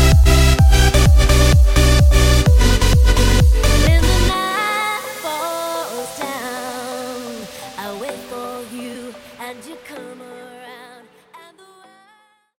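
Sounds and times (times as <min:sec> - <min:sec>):
epic music at 128 BPM: 0:00.0 - 0:08.3.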